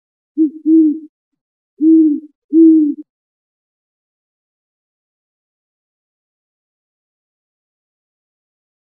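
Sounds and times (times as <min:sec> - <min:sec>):
great horned owl hooting: 0:00.4 - 0:01.1, 0:01.8 - 0:03.0.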